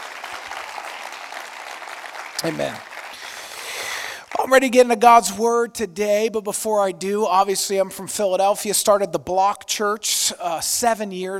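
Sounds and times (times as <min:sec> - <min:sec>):
audience applause: 0:00.0 - 0:04.5
speech: 0:02.4 - 0:02.9, 0:04.4 - 0:11.3.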